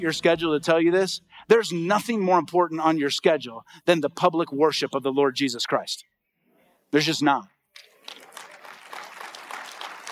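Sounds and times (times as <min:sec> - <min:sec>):
speech: 0:00.0 - 0:06.1, 0:06.9 - 0:07.5
light polite applause from a church congregation during a worship service: 0:07.8 - 0:10.1.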